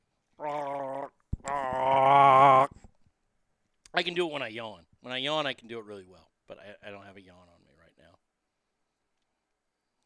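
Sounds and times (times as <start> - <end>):
person imitating a Chewbacca roar: 0.4 - 2.8
speech: 4.0 - 7.6.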